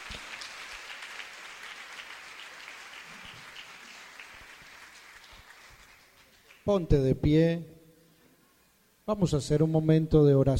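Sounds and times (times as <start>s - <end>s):
audience clapping: 0.0s - 6.8s
speech: 6.6s - 7.7s, 9.1s - 10.5s.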